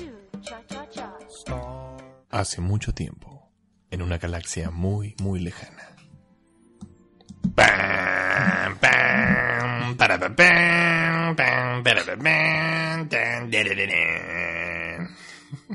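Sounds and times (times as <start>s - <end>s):
speech: 2.3s - 3.3s, 3.9s - 6.0s, 9.9s - 10.6s
burp: 7.6s - 15.1s.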